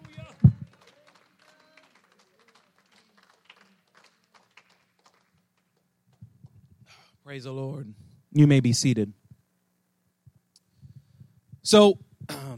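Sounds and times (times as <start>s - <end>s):
crowd clapping hands softly: 0.0s - 6.2s
speech: 7.3s - 9.2s, 11.7s - 12.1s.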